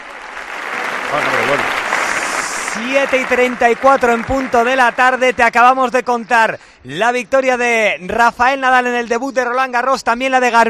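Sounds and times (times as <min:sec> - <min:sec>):
ovation from a nearly empty stadium: 0:00.0 - 0:05.5
speech: 0:01.1 - 0:01.7, 0:02.8 - 0:10.6.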